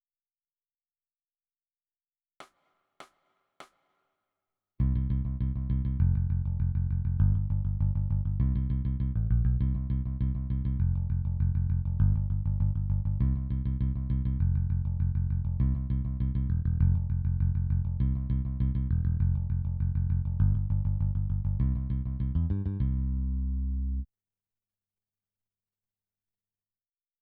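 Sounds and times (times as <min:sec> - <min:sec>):
bass: 0:04.8 - 0:24.1.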